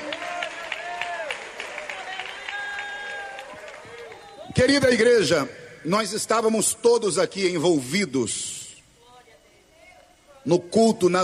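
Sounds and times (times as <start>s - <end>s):
audience clapping: 0.0s - 4.6s
speech: 4.5s - 8.6s, 10.4s - 11.2s.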